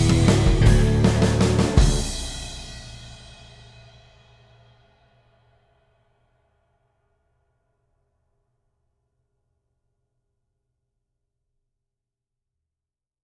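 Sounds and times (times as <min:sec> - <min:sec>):
guitar: 0:00.0 - 0:03.2
bass: 0:00.0 - 0:03.6
drums: 0:00.0 - 0:04.8.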